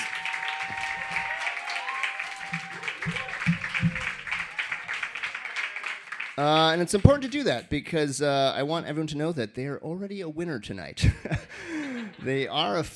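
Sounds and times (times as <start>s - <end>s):
audience applauding: 0.0s - 7.6s
speech: 6.4s - 12.9s
laughter: 11.0s - 12.9s.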